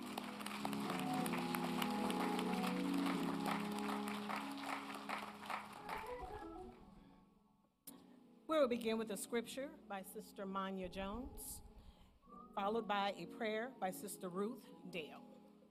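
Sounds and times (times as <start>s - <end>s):
audience applause: 0.0s - 6.7s
speech: 8.6s - 11.7s, 12.6s - 15.3s.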